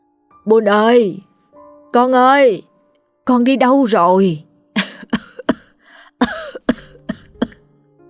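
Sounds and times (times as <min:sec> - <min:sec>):
speech: 0:00.4 - 0:01.3, 0:02.0 - 0:04.5
old woman coughing: 0:04.8 - 0:07.6.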